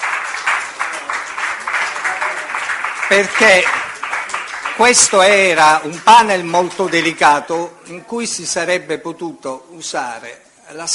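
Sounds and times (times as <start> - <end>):
audience applause: 0.0 - 7.5
speech: 3.1 - 3.8, 4.8 - 10.9.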